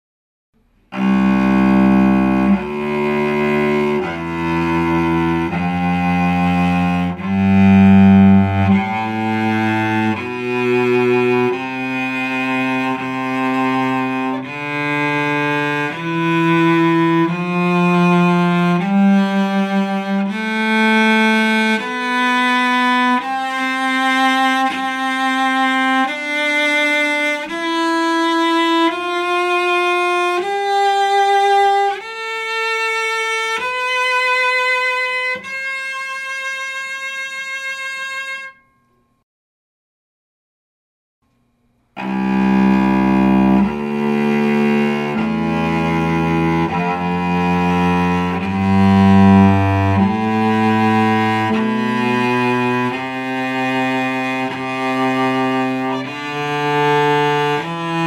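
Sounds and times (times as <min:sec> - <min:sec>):
cello: 0:00.9 - 0:38.5, 0:42.0 - 0:58.0.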